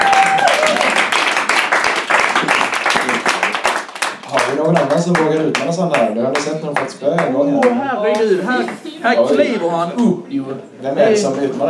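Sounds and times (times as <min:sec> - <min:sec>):
audience applause: 0:00.0 - 0:06.0
speech: 0:04.9 - 0:11.6.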